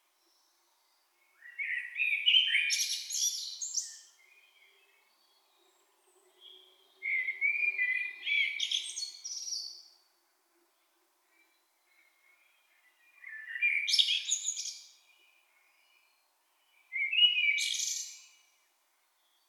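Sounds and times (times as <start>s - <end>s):
blackbird singing: 1.4s - 5.4s, 6.3s - 9.9s, 16.9s - 18.3s.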